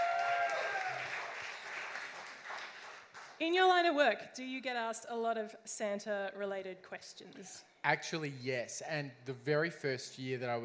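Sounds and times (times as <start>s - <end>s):
audience applause: 0.0s - 3.4s
speech: 3.4s - 10.6s.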